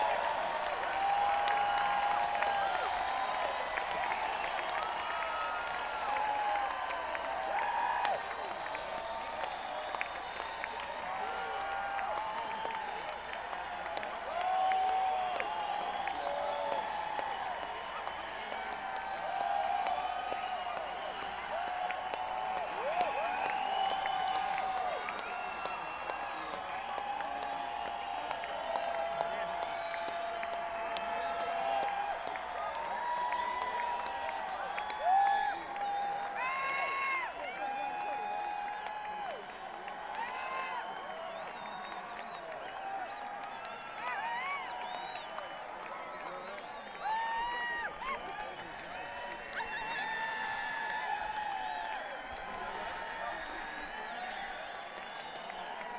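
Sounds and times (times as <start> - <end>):
crowd: 0.0 - 55.9.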